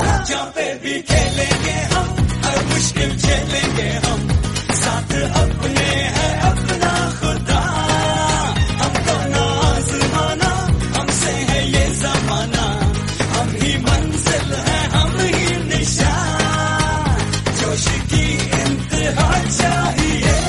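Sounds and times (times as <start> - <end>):
patriotic music: 0.0 - 20.4.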